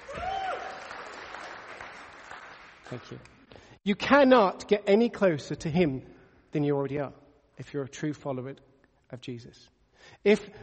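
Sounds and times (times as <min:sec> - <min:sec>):
faint audience clapping after a sermon: 0:00.0 - 0:03.7
speech: 0:02.9 - 0:10.6.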